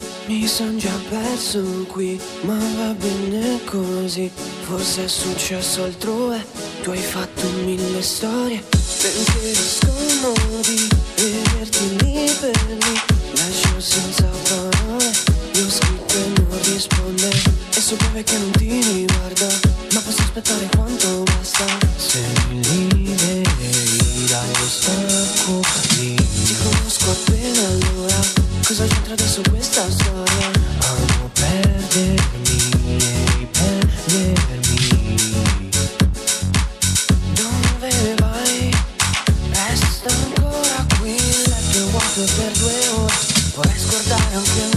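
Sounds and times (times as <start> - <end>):
dancefloor groove music: 0.0 - 44.7.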